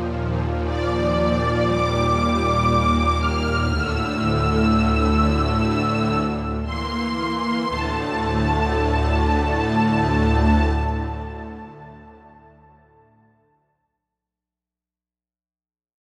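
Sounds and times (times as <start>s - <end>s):
JP-8 synth strings: 0.0s - 12.9s.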